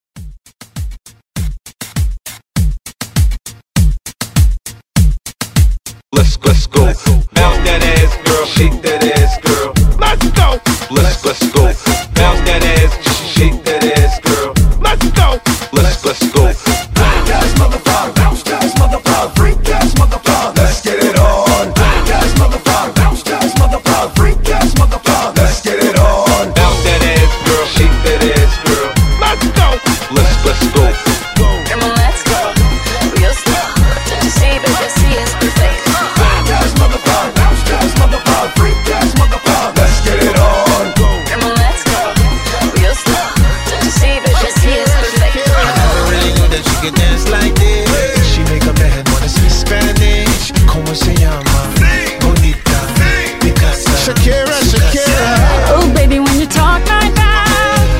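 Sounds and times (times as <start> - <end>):
throwback reggaeton beat: 0.2 - 57.9.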